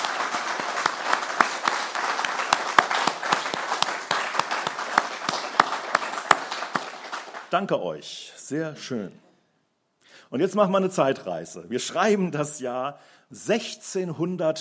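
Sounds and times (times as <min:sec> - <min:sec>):
warm applause from audience: 0:00.0 - 0:07.6
speech: 0:07.5 - 0:09.2, 0:10.3 - 0:14.6.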